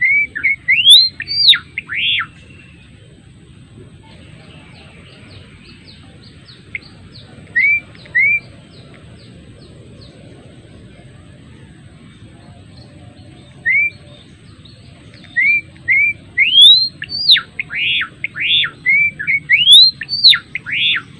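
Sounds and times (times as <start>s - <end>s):
adult male Java sparrow singing whistled notes: 0.0s - 3.0s, 4.7s - 10.2s, 12.7s - 21.1s.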